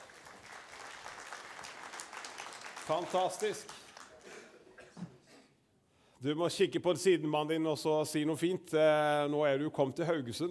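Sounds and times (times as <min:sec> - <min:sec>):
audience applause: 0:00.0 - 0:04.5
speech: 0:02.9 - 0:03.8, 0:06.2 - 0:10.4.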